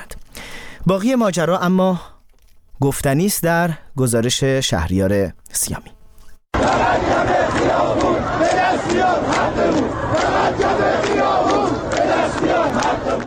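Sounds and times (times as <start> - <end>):
speech: 0.8 - 2.1, 2.8 - 6.0
protesters chanting slogans in the street: 6.6 - 13.2.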